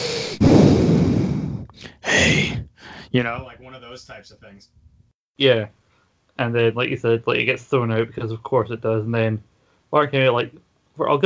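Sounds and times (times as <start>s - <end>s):
person imitating heavy breathing: 0.0s - 3.2s
speech: 3.1s - 5.8s, 6.4s - 11.2s.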